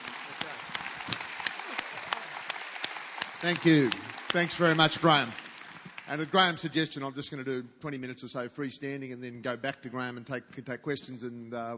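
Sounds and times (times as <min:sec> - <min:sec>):
audience applause: 0:00.0 - 0:06.7
speech: 0:03.4 - 0:05.4, 0:06.1 - 0:11.7.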